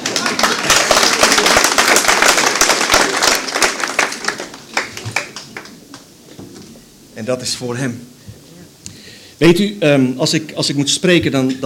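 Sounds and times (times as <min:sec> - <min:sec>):
crowd clapping: 0:00.0 - 0:06.1
speech: 0:07.2 - 0:08.2, 0:09.4 - 0:11.6.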